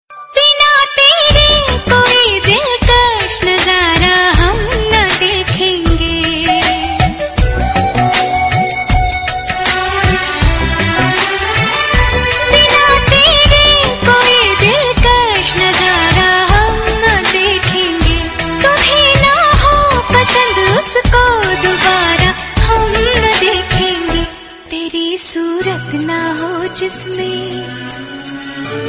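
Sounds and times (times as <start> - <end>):
Hindi song cut: 0.1 - 28.8.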